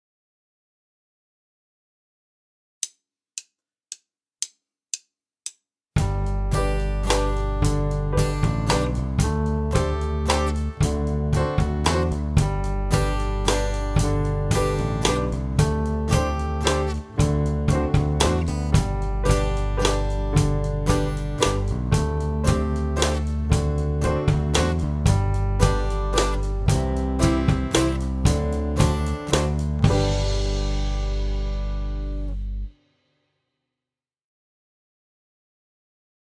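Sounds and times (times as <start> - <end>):
improvisation on notes D C B A and G: 6.0 - 32.5.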